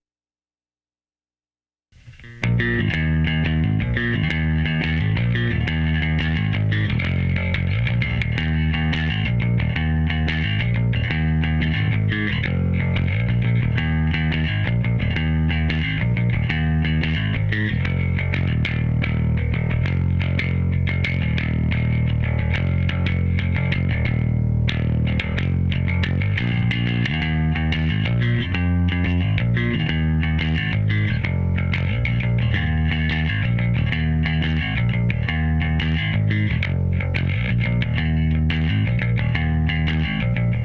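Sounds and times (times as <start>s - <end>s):
bass: 1.9s - 40.6s.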